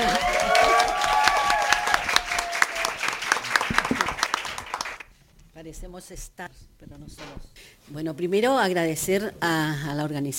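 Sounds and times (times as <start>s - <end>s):
high cheers and whistles: 0.0s - 3.2s
audience applause: 0.0s - 5.1s
speech: 6.0s - 10.3s.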